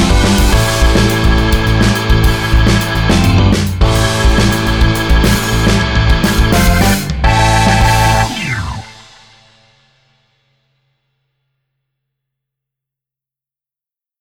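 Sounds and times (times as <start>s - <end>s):
rock music: 0.0s - 9.7s.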